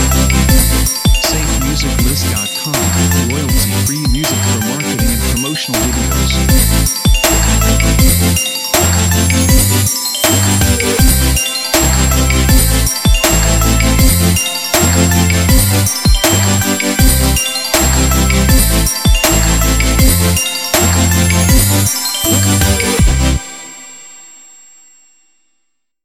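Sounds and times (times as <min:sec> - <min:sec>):
Christmas future bass music: 0:00.0 - 0:23.5.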